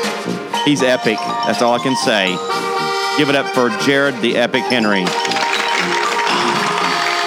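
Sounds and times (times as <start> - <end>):
speech: 0.2 - 2.6, 3.2 - 6.0
light scattered applause: 5.1 - 7.2.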